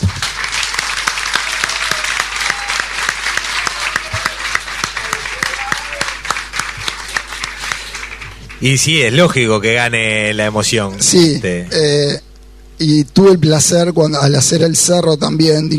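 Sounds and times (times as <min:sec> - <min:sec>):
audience applause: 0:00.0 - 0:09.1
speech: 0:08.6 - 0:12.2, 0:12.8 - 0:15.7.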